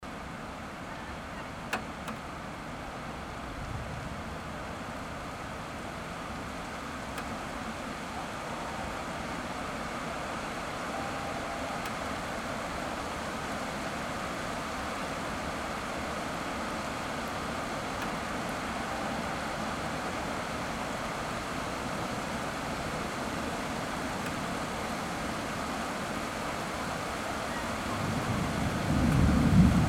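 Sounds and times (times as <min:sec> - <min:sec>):
rain: 0:00.0 - 0:29.8.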